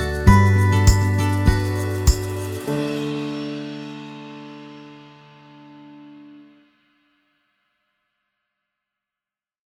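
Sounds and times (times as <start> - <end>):
inspiring calm folk music: 0.0 - 6.4.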